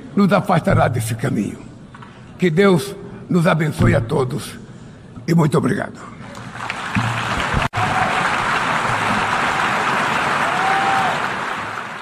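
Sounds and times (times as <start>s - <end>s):
speech: 0.2s - 1.7s, 2.4s - 4.6s, 5.3s - 6.2s
crowd applauding after a speech: 6.3s - 12.0s.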